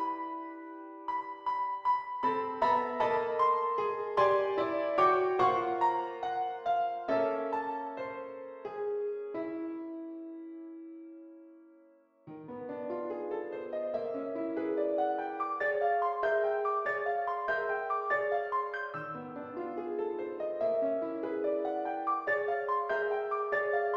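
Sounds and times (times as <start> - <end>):
piano piece: 0.0 - 23.9.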